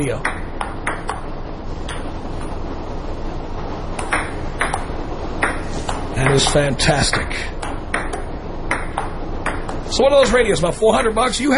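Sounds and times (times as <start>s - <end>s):
speech: 0.0s - 0.3s, 6.2s - 7.5s, 9.9s - 11.5s
ping pong ball bouncing: 0.0s - 2.5s, 4.0s - 9.9s
steady rushing hiss: 0.0s - 11.5s.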